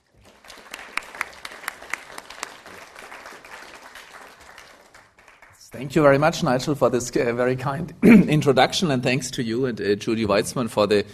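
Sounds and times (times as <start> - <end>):
audience applause welcoming the speaker at an academic book lecture: 0.0 - 5.6
speech: 5.7 - 11.1.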